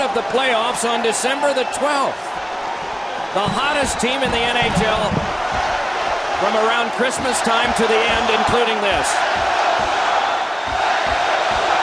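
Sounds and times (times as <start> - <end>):
speech: 0.2 - 2.6, 3.3 - 5.3, 6.4 - 9.5
home crowd chanting at hockey game: 2.2 - 11.8
rhythmic low thumps: 2.4 - 11.8.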